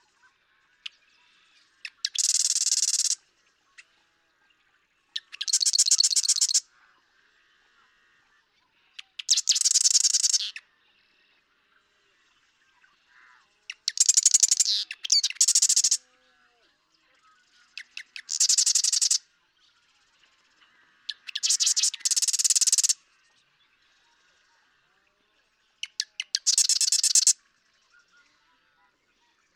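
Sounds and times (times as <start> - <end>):
marsh wren singing: 1.8 - 3.3, 5.2 - 6.7, 9.0 - 10.6, 13.3 - 16.0, 17.6 - 19.2, 20.0 - 23.3, 25.6 - 27.4.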